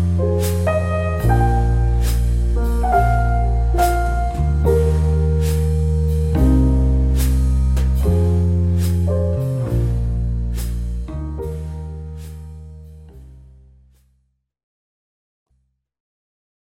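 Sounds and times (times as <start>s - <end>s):
relaxing coffee shop jazz: 0.0s - 13.2s.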